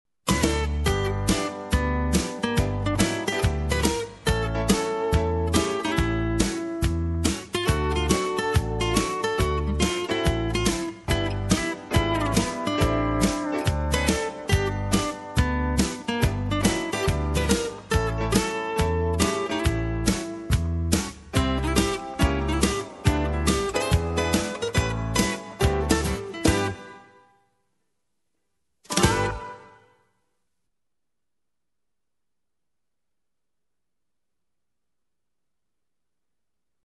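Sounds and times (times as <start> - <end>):
slow country jazz and bluegrass music: 0.3 - 27.1, 28.9 - 29.8.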